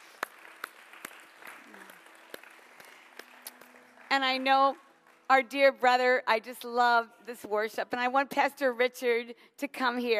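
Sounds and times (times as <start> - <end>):
audience applause: 0.0 - 5.3
speech: 4.2 - 10.1.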